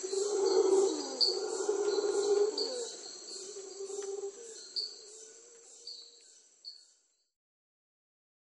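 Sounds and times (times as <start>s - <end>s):
howler monkey: 0.0s - 6.2s.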